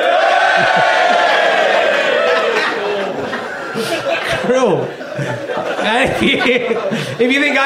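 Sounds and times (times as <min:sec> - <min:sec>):
audience cheering: 0:00.0 - 0:04.2
laughter: 0:00.1 - 0:07.6
speech: 0:04.5 - 0:07.6.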